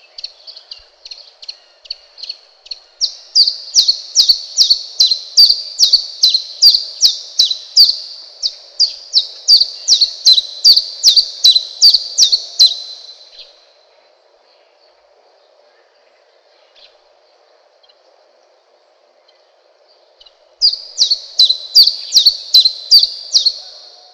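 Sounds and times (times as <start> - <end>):
warbler singing: 0.0 - 13.5, 20.6 - 24.1
grasshopper chirping: 2.2 - 13.5, 20.6 - 24.1.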